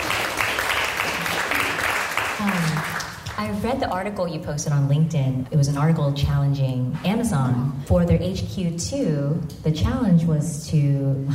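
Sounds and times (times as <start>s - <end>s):
audience applause: 0.0s - 3.4s
speech: 3.4s - 11.3s.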